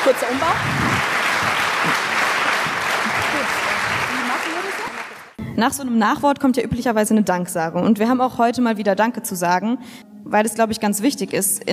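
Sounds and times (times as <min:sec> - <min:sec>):
audience applause: 0:00.0 - 0:05.4
speech: 0:00.1 - 0:00.9, 0:05.6 - 0:11.7
laughter: 0:01.2 - 0:05.0.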